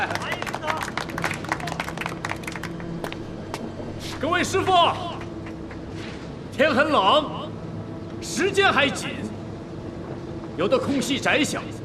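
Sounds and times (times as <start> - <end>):
people clapping: 0.0 - 3.7
speech: 4.2 - 5.1, 6.6 - 7.4, 8.2 - 9.3, 10.6 - 11.7.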